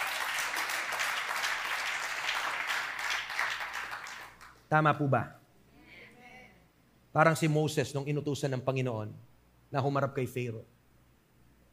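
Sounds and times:
congregation applauding in church during a service: 0.0s - 4.6s
speech: 4.7s - 5.4s, 7.1s - 10.8s.

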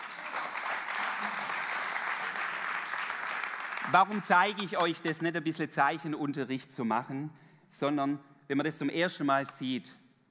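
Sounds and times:
applause: 0.0s - 5.0s
speech: 3.9s - 10.0s.

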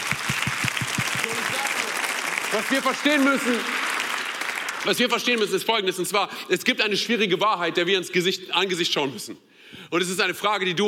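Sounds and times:
audience applause: 0.0s - 5.4s
speech: 2.5s - 3.8s, 4.8s - 10.8s.

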